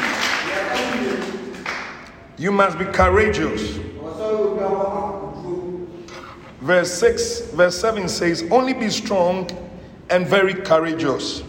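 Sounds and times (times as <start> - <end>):
audience clapping: 0.0 - 2.2
speech: 2.4 - 4.8, 6.7 - 11.4.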